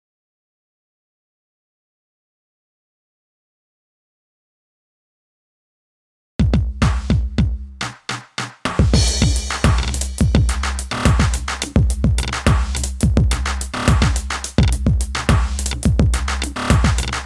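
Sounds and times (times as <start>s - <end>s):
drums and percussion: 6.4s - 17.2s.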